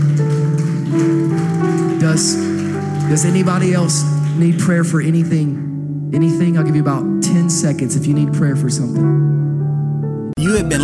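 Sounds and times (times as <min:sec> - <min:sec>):
audience hand clapping in praise: 0:00.0 - 0:05.5
speech: 0:02.2 - 0:02.5, 0:03.1 - 0:09.5, 0:10.4 - 0:10.8.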